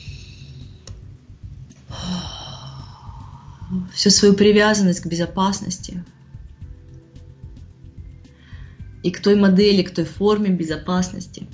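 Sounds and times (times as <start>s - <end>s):
slow breath in and out during a guided relaxation exercise: 0.0s - 0.8s, 1.9s - 3.9s, 8.3s - 9.0s
speech: 3.7s - 6.2s, 9.0s - 11.5s.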